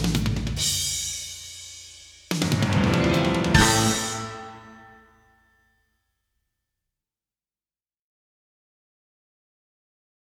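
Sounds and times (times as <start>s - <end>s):
rhythm track: 2.4s - 5.1s.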